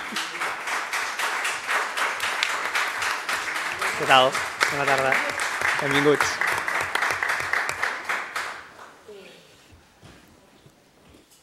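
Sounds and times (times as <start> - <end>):
group applauding: 0.0 - 9.0
speech: 4.0 - 6.4.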